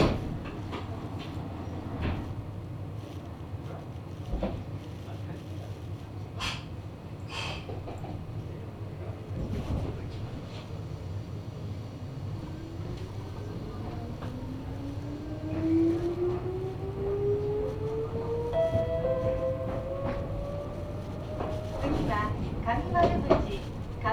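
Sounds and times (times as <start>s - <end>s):
Meitetsu Bisai Line train car rumbling: 0.0s - 24.1s
rising whine of train accelerating: 14.1s - 22.6s.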